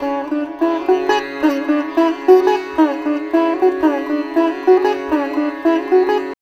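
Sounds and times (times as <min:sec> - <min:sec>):
sitar: 0:00.0 - 0:06.4.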